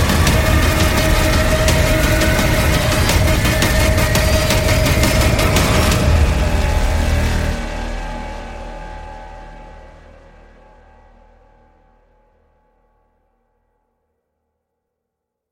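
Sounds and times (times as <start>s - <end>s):
demolition drums: 0.0s - 9.2s.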